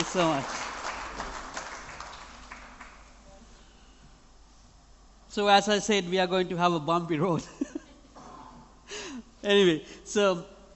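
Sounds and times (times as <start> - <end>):
audience applause: 0.0 - 3.1
speech: 0.1 - 0.6, 5.3 - 7.8, 9.4 - 10.5.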